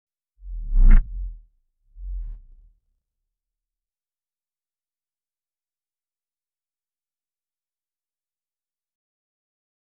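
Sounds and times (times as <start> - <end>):
lowpoly game gravity sound effect: 0.5 - 1.4.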